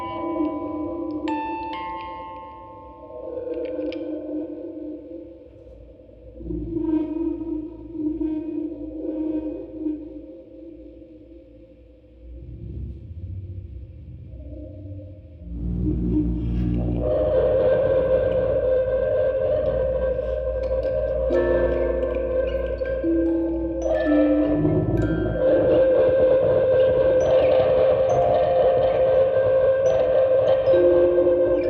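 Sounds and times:
field recording ambience: 0.0s - 31.6s
quartet of music boxes playing: 19.6s - 31.6s.

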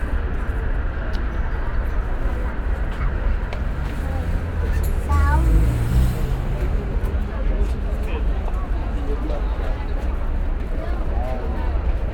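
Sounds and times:
street sounds in Brazil: 0.0s - 12.1s.

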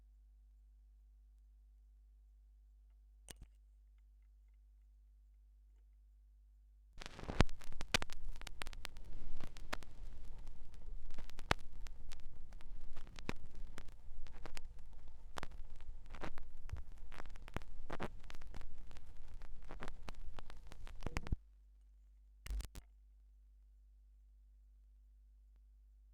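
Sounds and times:
vinyl record noise: 7.0s - 21.4s, 22.5s - 22.8s.

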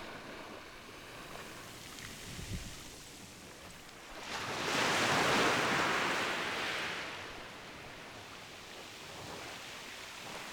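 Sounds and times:
beach ambience at Playa Forti in Curacao: 0.0s - 7.8s.

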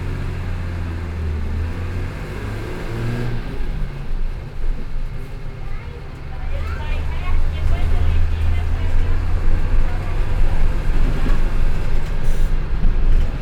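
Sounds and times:
bus interior ambience in Brazil: 0.0s - 13.4s.

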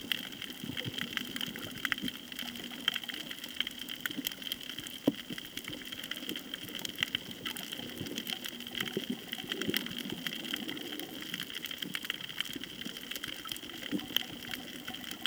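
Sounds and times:
snorkeling at Koh Tao: 0.0s - 15.2s.

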